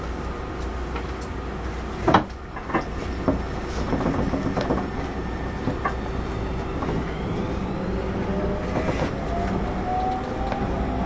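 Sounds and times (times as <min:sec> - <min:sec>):
Tobu 30000 series train interior rumble: 0:00.0 - 0:11.0
clacks and thuds: 0:02.0 - 0:06.0
faint rising whine tones: 0:04.7 - 0:11.0.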